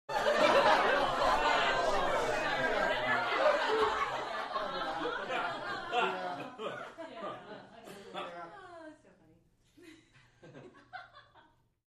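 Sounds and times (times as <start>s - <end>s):
boisterous crowd in small interior: 0.1s - 8.3s
laughter: 0.1s - 8.9s, 9.8s - 11.5s.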